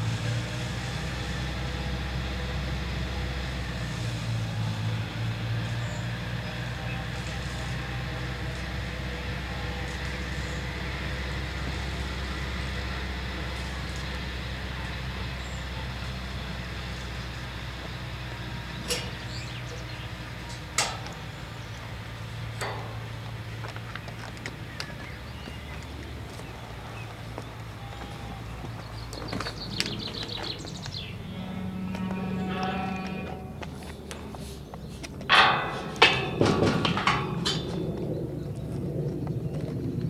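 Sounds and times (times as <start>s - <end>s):
walking soundscape: 0.0s - 40.0s.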